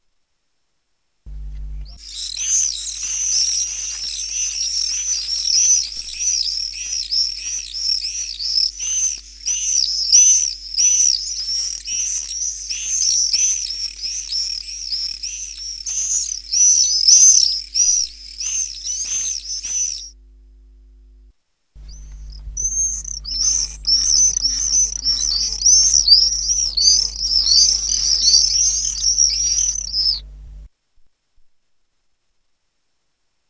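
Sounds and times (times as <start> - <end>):
low hum: 1.3 - 30.7
common swifts screaming: 2.0 - 20.1, 21.9 - 30.3.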